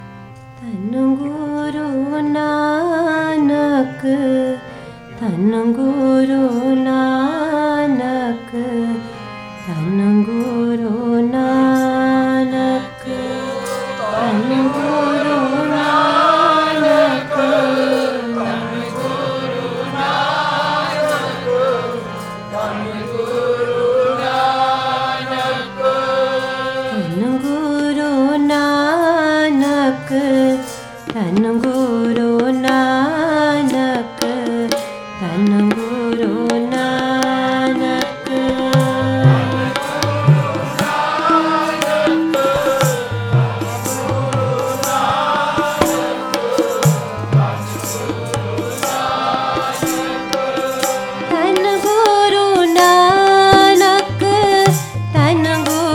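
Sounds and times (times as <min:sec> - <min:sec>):
kirtan devotional chanting: 0:00.0 - 0:55.9.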